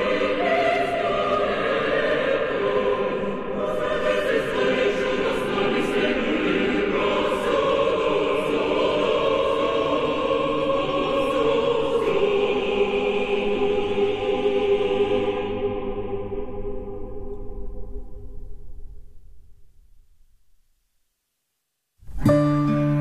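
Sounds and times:
Russian Christmas carols: 0:00.0 - 0:18.2.

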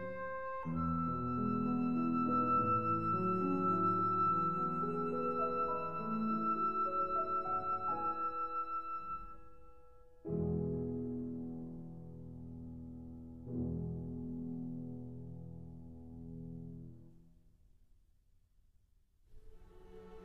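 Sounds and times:
flute and piano lullaby: 0:00.0 - 0:15.4.

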